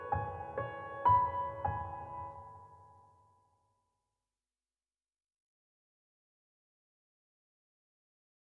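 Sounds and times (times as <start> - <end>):
piano: 0.0 - 3.3.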